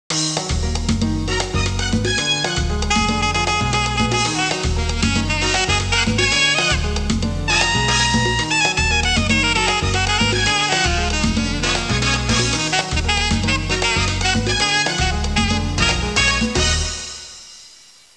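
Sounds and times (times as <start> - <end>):
latin music: 0.1 - 17.9.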